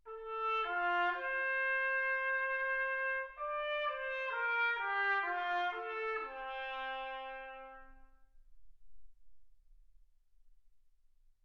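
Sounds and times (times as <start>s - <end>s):
trumpet: 0.1s - 8.4s.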